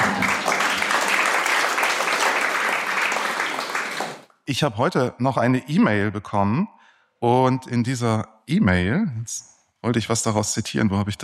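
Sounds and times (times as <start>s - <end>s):
audience applause: 0.0s - 4.2s
speech: 4.5s - 11.2s.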